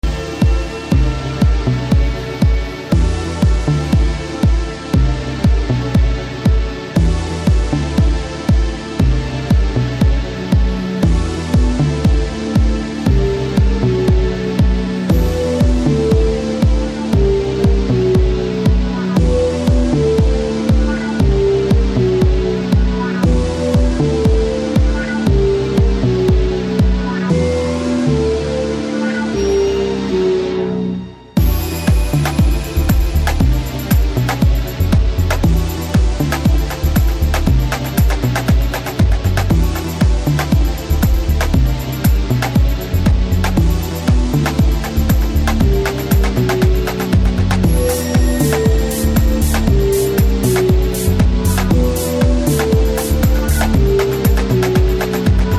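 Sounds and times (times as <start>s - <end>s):
blues music: 0.0s - 55.5s.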